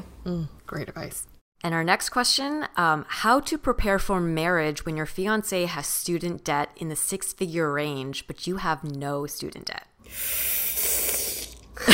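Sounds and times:
speech: 0.2 - 10.6
deep breath: 10.0 - 11.6.

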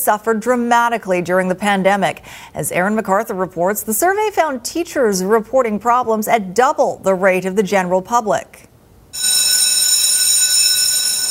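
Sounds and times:
speech: 0.0 - 9.4
school bell ringing: 9.2 - 11.2.

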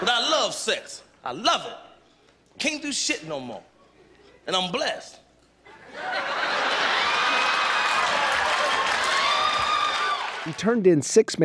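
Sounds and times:
speech: 0.0 - 1.9, 2.6 - 3.7, 4.4 - 5.2, 5.9 - 7.0, 10.4 - 11.4
crowd laughing: 5.6 - 9.8
raucous crowd applause: 5.9 - 10.8
cheers and whoops: 6.7 - 10.6.

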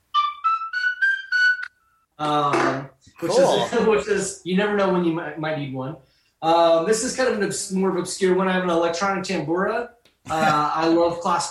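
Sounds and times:
Irish tin whistle being played: 0.1 - 2.1
speech: 2.2 - 11.5
laughter: 3.2 - 3.8, 10.3 - 10.7.

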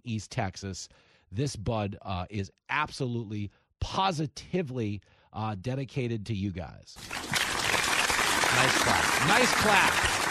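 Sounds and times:
speech: 0.0 - 7.5, 8.5 - 10.2
crowd clapping: 7.0 - 10.2.

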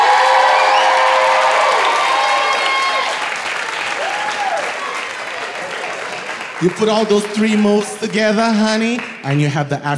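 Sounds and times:
audience whoops and shouts: 0.0 - 3.3, 3.9 - 5.0
audience clapping for a dancer: 0.0 - 9.5
speech: 6.6 - 9.9.

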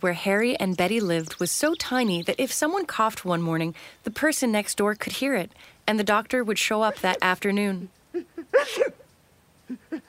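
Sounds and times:
speech: 0.0 - 9.0
sneeze: 8.6 - 9.0.

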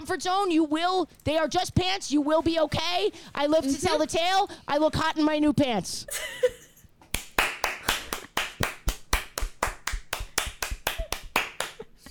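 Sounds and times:
speech: 0.1 - 6.6
hand clapping: 7.1 - 12.0.

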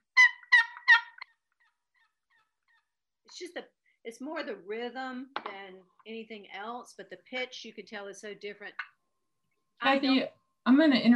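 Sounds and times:
turkey yelp on long box call: 0.2 - 1.4
speech: 3.3 - 8.9, 9.8 - 11.1.

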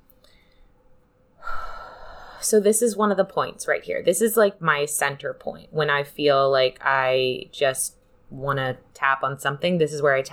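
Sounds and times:
deep breath drawn in during a chest-tapping exercise: 1.4 - 2.4
speech: 2.4 - 10.3.

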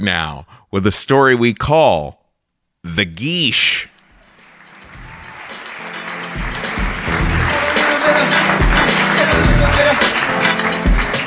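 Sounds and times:
speech: 0.0 - 2.2, 2.8 - 3.9
audience applause: 4.1 - 11.2.

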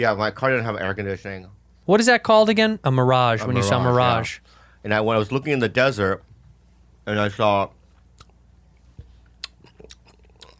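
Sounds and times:
speech: 0.0 - 6.3, 7.1 - 7.8
chewing candy corn into a microphone: 9.2 - 10.5.

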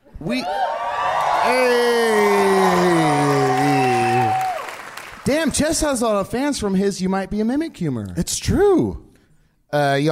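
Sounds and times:
speech: 0.2 - 0.8, 1.4 - 1.9, 5.3 - 9.1, 9.7 - 10.0
crowd cheering: 0.2 - 5.5.

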